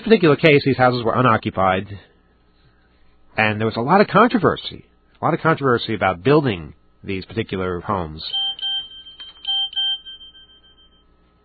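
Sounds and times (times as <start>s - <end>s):
speech: 0.1s - 2.1s, 3.4s - 8.4s
mobile phone ringing with bright electronic notes: 8.3s - 11.1s.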